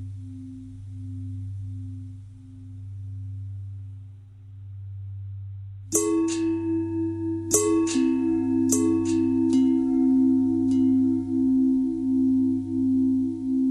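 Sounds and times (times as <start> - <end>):
long bell ringing: 5.9 - 13.5.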